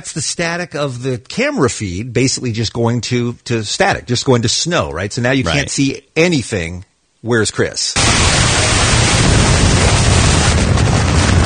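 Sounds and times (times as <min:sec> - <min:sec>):
speech: 0:00.0 - 0:08.9
building explosion: 0:08.0 - 0:11.4.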